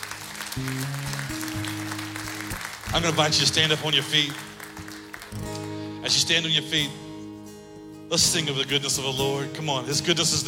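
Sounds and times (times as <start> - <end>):
congregation applauding in church after a prayer: 0.0 - 6.0
speech: 0.6 - 1.4, 2.9 - 4.5, 6.1 - 7.0, 8.1 - 10.4.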